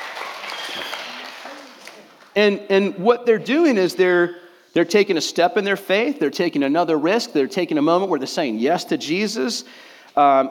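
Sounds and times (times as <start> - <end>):
crowd applauding: 0.0 - 2.4
speech: 2.4 - 10.4.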